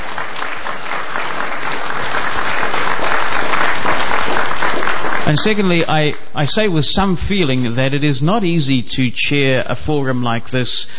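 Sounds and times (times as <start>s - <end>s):
audience applause for candidates: 0.0s - 6.2s
speech: 5.3s - 10.9s.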